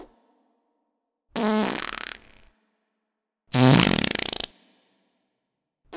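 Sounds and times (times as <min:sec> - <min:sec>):
fart tone: 0:01.4 - 0:02.5, 0:03.6 - 0:04.5.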